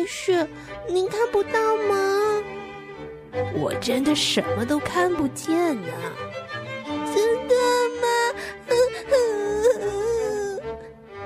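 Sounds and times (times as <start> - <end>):
speech: 0.0 - 6.6
performer voicing a girl crying sadly: 7.1 - 10.9.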